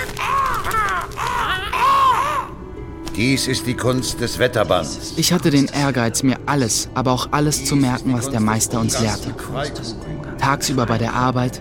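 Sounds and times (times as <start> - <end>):
raven cawing: 0.0 - 2.6
speech: 3.2 - 11.6.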